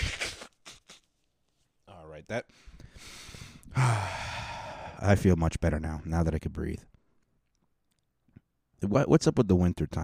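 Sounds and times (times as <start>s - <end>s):
person blowing nose: 0.0s - 1.2s
speech: 2.2s - 4.3s, 5.0s - 6.9s, 8.8s - 10.0s.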